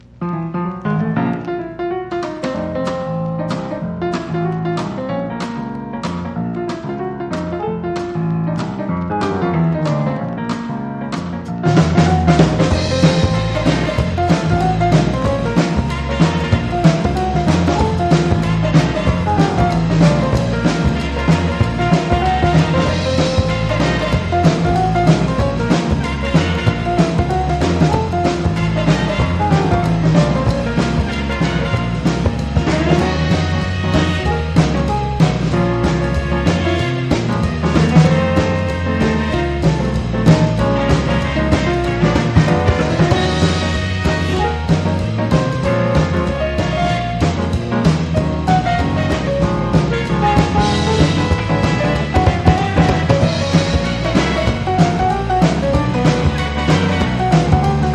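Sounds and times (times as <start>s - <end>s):
instrumental music: 0.0s - 57.9s.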